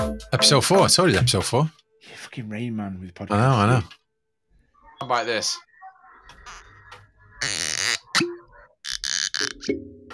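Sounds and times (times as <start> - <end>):
speech: 0.0 - 4.0, 5.0 - 5.7, 9.6 - 9.9
cork-popping sounds made by mouth: 7.4 - 9.9.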